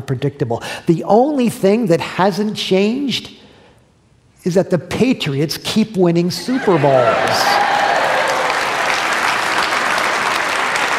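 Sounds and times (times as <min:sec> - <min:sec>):
speech: 0:00.0 - 0:03.4, 0:04.4 - 0:07.6
audience applause: 0:06.6 - 0:10.9.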